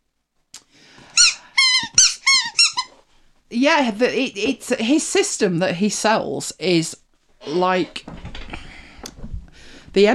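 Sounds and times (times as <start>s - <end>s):
squeaky rubber chicken dog toy squeaking: 1.2s - 3.0s
speech: 3.5s - 8.2s, 10.0s - 10.1s.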